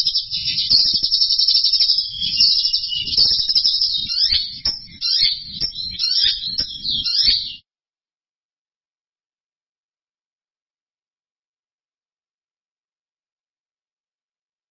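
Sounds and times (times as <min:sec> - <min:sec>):
bird song with high rapid trilling chatter: 0:00.0 - 0:07.6.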